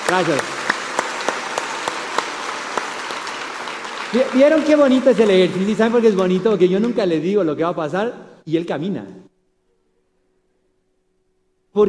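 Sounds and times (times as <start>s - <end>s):
group applause: 0.0s - 7.2s
speech: 0.1s - 0.6s, 4.1s - 9.2s.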